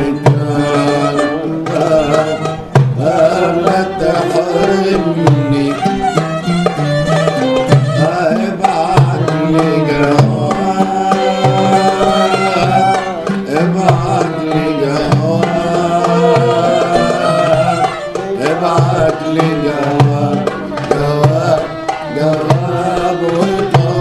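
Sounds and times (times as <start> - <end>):
concert music: 0.0 - 24.0.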